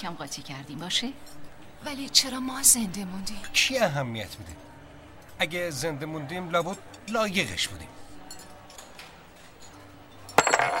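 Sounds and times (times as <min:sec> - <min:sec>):
speech: 0:00.0 - 0:04.7, 0:05.4 - 0:08.0
lucky coin clinking as it is flipped and handled: 0:10.2 - 0:10.7.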